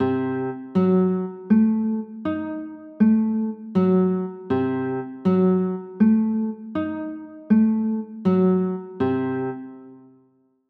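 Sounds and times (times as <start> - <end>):
C diminished seventh chords: 0.0 - 10.1.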